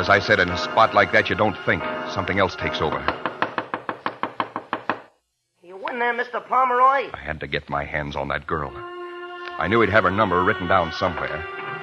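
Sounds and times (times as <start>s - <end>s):
speech: 0.0s - 3.3s, 6.0s - 8.9s, 9.6s - 11.6s
hard knocks on a wooden door: 3.1s - 5.1s.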